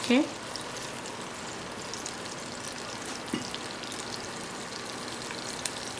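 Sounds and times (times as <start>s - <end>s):
ginger and garlic sizzling in oil heated on high: 0.0s - 5.9s.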